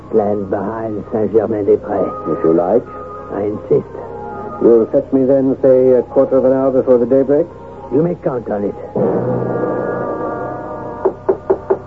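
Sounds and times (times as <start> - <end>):
speech: 0.1 - 4.0, 4.6 - 9.5
knocking on a door: 11.0 - 11.8.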